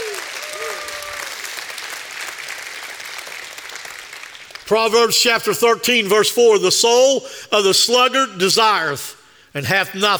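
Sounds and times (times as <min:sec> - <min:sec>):
audience applause: 0:00.0 - 0:04.6
speech: 0:04.7 - 0:10.1.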